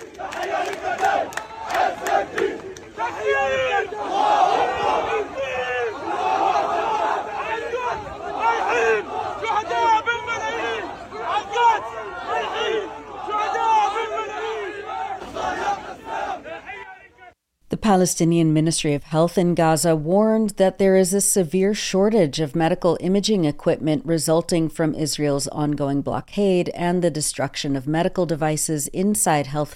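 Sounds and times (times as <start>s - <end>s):
massive crowd of mourners at funeral procession: 0.0s - 17.3s
speech: 17.9s - 29.7s.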